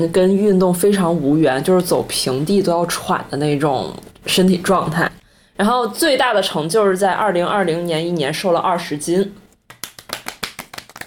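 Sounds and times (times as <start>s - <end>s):
speech: 0.0s - 9.4s
hand clapping: 9.6s - 11.0s.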